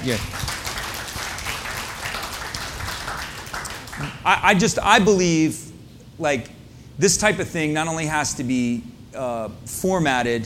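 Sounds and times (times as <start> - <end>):
speech: 0.0 - 0.4, 4.0 - 5.6, 6.2 - 10.4
crowd applause: 0.0 - 4.4.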